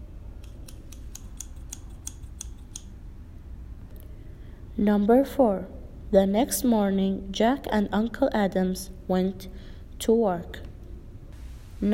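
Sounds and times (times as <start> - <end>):
scissors cutting a piece of cloth for an apron: 0.4 - 2.9
speech: 4.8 - 10.7.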